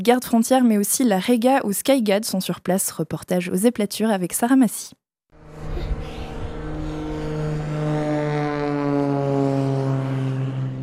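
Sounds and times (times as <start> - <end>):
speech: 0.0 - 5.0
propeller aircraft engine: 5.3 - 10.8.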